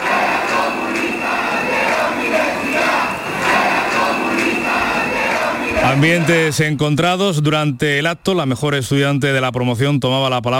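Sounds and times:
students chanting: 0.0s - 6.6s
speech: 5.9s - 10.5s.

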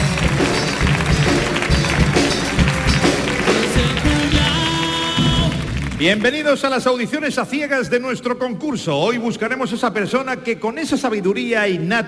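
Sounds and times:
audience applause: 0.0s - 6.9s
speech: 6.0s - 12.0s.

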